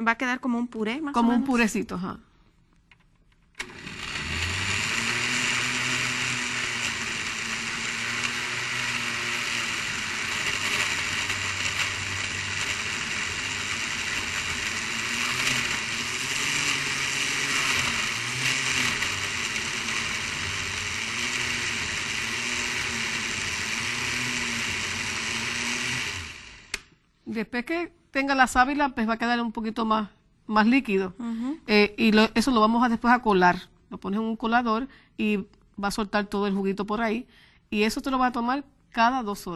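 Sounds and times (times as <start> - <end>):
speech: 0.0 - 2.3, 27.4 - 39.5
blender liquefying aloe mixture: 3.6 - 26.9.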